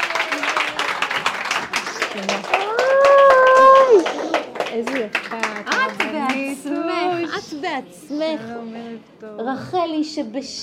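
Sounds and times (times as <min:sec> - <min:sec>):
high sustained vocal cheer: 0:00.0 - 0:01.2, 0:02.4 - 0:04.4
crowd clapping: 0:00.0 - 0:06.9
speech: 0:02.2 - 0:02.6, 0:04.7 - 0:10.6.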